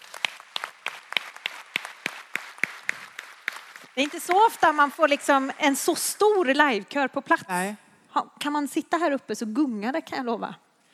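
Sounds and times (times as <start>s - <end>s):
audience applause for the choir: 0.0s - 6.1s
speech: 4.0s - 10.6s.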